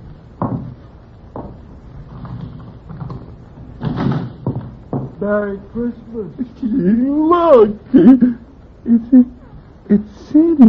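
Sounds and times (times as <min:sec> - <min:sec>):
door being opened with dull wooden thuds and knocks: 0:00.4 - 0:01.6, 0:03.1 - 0:05.2
speech: 0:05.2 - 0:10.6.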